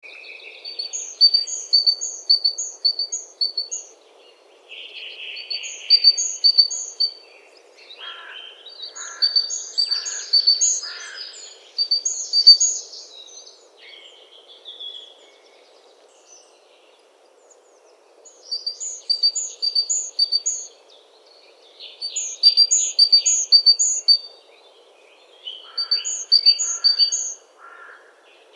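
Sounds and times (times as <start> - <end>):
low background noise: 0.0 - 28.5
great tit calling: 0.7 - 3.8, 5.4 - 7.1, 8.9 - 12.9, 18.5 - 20.7, 22.0 - 24.3, 25.6 - 28.0.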